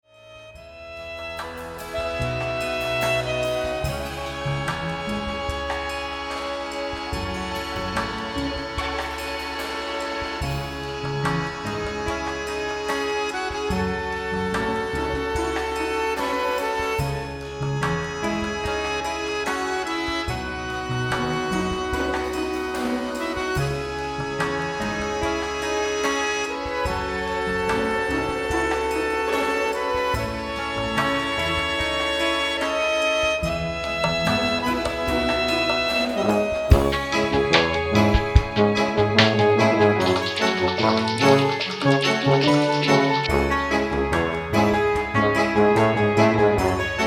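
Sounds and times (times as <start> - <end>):
accordion: 0.6 - 47.0.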